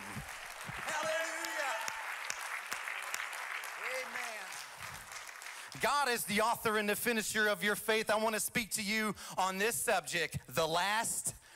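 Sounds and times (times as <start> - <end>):
audience hand clapping: 0.0 - 6.4
speech: 5.8 - 11.2.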